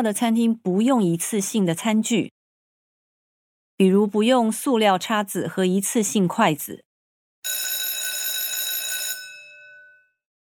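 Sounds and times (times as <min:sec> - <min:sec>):
speech: 0:00.0 - 0:02.4, 0:03.8 - 0:06.9
school bell ringing: 0:07.5 - 0:10.2.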